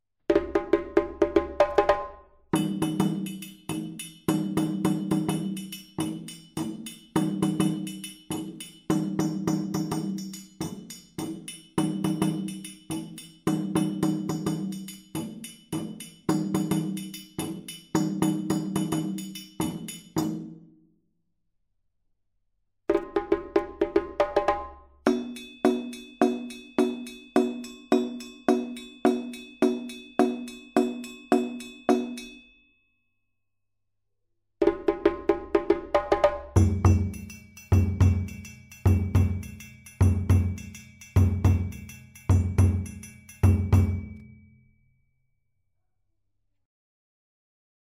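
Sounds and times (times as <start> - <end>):
djembe: 0.3 - 3.3, 22.9 - 25.3, 34.6 - 44.0
dunun drums: 0.3 - 20.6, 22.9 - 32.3, 34.6 - 44.3.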